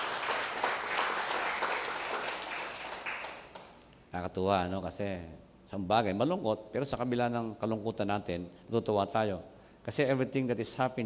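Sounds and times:
congregation clapping during a church sermon: 0.0 - 3.8
speech: 4.1 - 11.0.

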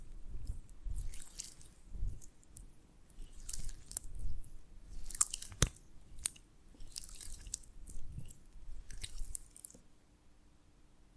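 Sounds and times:
honeycomb on branch being chewed and bitten: 0.0 - 9.8.

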